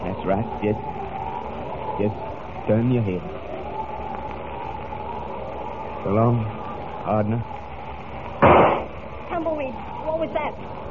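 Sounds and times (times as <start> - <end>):
speech: 0.2 - 1.0, 2.0 - 3.5, 6.0 - 7.6, 9.4 - 10.8
gunshot: 8.4 - 9.0.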